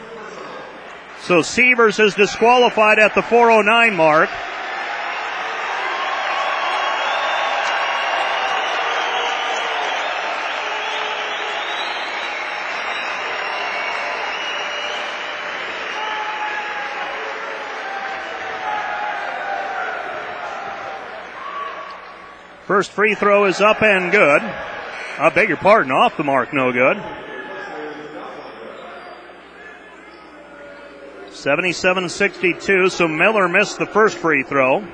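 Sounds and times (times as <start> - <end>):
arena crowd applause: 1.0 - 22.4, 23.0 - 28.0
speech: 1.3 - 4.5, 22.8 - 27.3, 31.4 - 34.9.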